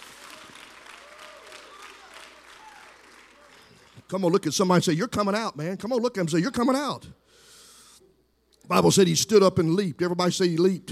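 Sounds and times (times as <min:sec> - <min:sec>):
audience clapping: 0:00.0 - 0:04.5
speech: 0:04.1 - 0:07.2, 0:08.7 - 0:10.8.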